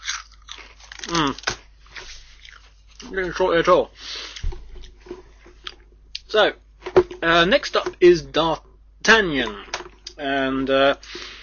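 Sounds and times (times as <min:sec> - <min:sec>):
crisps being bitten and chewed: 0:00.0 - 0:03.4
speech: 0:03.1 - 0:04.1, 0:06.3 - 0:06.6, 0:07.2 - 0:11.2.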